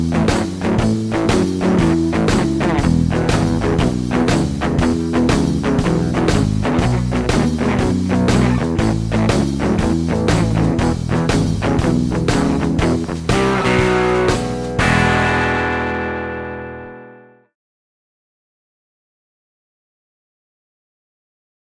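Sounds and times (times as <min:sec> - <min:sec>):
rhythm guitar: 0:00.0 - 0:17.4.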